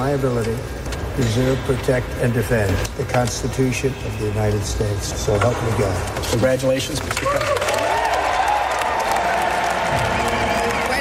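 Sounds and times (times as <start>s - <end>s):
speech: 0.0s - 7.7s
applause after presidential oath: 6.9s - 10.9s.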